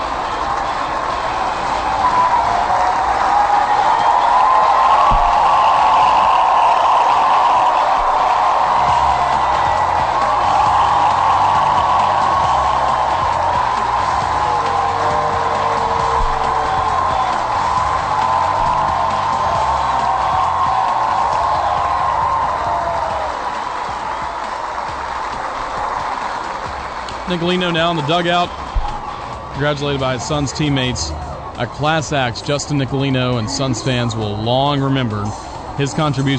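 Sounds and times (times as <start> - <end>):
ballpark crowd applauding and cheering: 0.0 - 36.3
speech: 27.3 - 28.6, 29.6 - 36.3.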